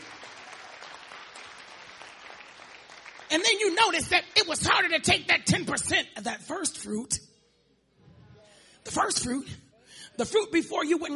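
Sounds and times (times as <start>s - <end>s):
congregation clapping hands during a church sermon: 0.0s - 4.5s
speech: 3.3s - 7.3s, 8.9s - 9.6s, 10.2s - 11.1s.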